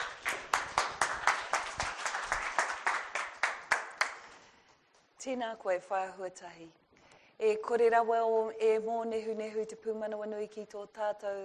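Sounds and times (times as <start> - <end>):
audience applause welcoming a school principal: 0.0 - 4.4
speech: 5.2 - 6.8, 7.4 - 11.4.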